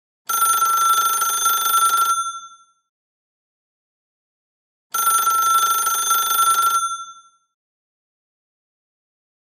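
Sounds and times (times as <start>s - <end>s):
antique electronic telephone ringing: 0.3s - 2.7s, 5.0s - 7.5s.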